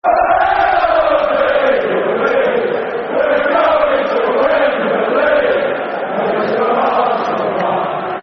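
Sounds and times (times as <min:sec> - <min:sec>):
football crowd chanting a soccer song: 0:00.0 - 0:08.2.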